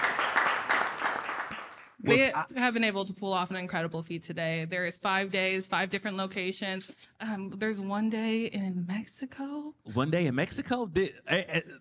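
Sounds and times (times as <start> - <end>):
crowd applauding: 0.0 - 2.2
speech: 2.0 - 11.7.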